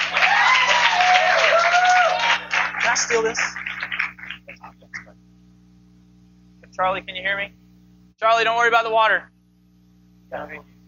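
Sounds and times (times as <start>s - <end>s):
drawn-out whoops and cheers: 0.0s - 2.5s
audience applause: 0.0s - 4.8s
speech: 3.1s - 3.6s, 6.8s - 7.6s, 8.2s - 9.3s, 10.3s - 10.7s.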